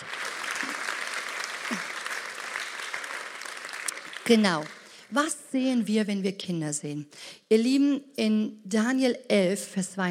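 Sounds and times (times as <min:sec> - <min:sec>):
audience applause: 0:00.0 - 0:05.0
speech: 0:04.3 - 0:10.0.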